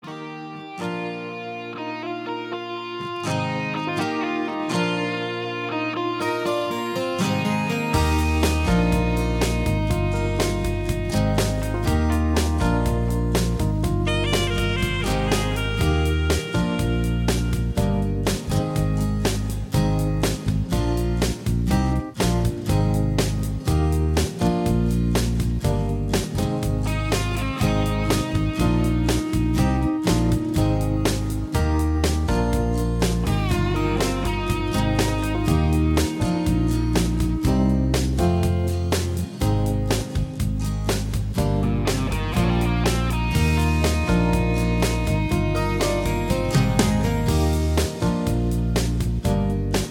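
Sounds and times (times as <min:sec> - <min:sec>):
instrumental music: 0:00.0 - 0:49.9.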